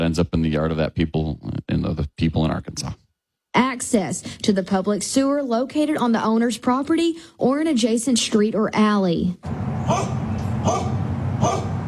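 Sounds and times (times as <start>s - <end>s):
steady low noise: 0.0s - 11.8s
speech: 0.1s - 3.0s, 3.6s - 11.6s
dogs barking at a property where garbage has piled up: 9.8s - 11.8s.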